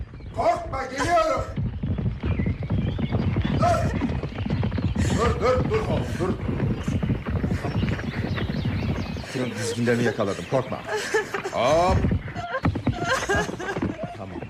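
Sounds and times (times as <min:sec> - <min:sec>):
horse hooves galloping: 0:00.0 - 0:14.4
speech: 0:00.4 - 0:01.5, 0:09.4 - 0:12.2
laughter: 0:05.0 - 0:08.2, 0:09.3 - 0:14.4.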